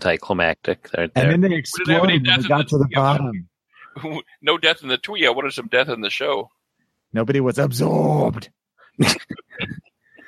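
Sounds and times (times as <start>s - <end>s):
speech: 0.0s - 9.8s
coughing: 9.0s - 10.0s.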